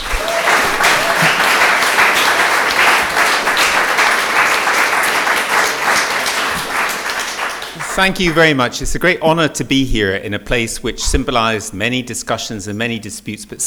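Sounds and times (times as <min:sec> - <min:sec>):
audience applause welcoming a speaker at Conway Hall: 0:00.0 - 0:09.2
laughter: 0:00.0 - 0:13.6
speech: 0:08.0 - 0:13.6.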